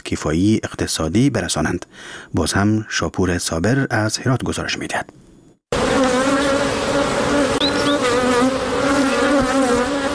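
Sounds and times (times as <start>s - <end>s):
speech: 0.1s - 5.2s
honeybees buzzing at beehives: 5.7s - 10.1s.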